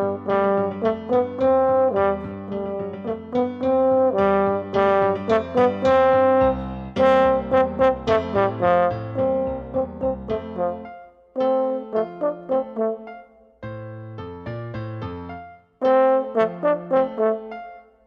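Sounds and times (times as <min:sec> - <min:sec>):
French horn solo: 0:00.0 - 0:13.3, 0:15.8 - 0:18.0
piano: 0:00.0 - 0:18.0.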